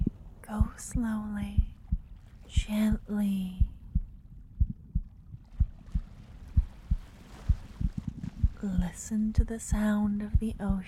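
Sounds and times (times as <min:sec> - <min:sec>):
speech: 0:00.5 - 0:01.7, 0:02.5 - 0:03.7, 0:08.6 - 0:10.8
rapid heartbeat: 0:01.4 - 0:02.1, 0:02.9 - 0:10.8.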